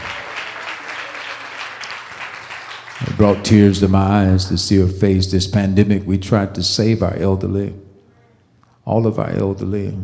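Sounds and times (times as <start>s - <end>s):
audience clapping hands: 0.0s - 4.9s
speech: 3.2s - 7.8s, 8.8s - 10.0s.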